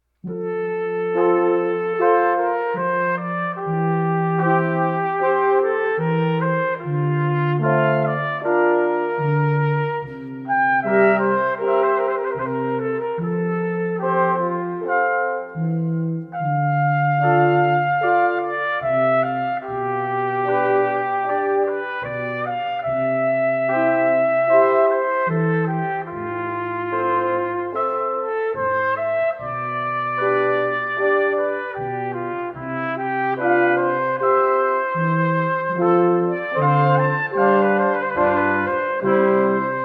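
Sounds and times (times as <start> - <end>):
brass quintet playing an arioso: 0.2 - 39.8.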